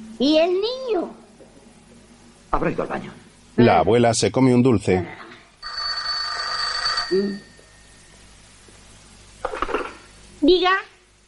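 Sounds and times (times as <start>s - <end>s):
speech: 0.2s - 1.2s, 2.5s - 5.3s, 7.1s - 7.5s, 10.4s - 10.9s
telephone ringing: 5.6s - 7.8s.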